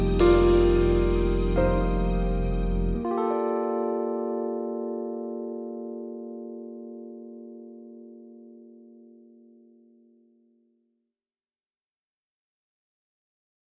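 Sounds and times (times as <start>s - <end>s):
warm piano: 0.0s - 9.6s.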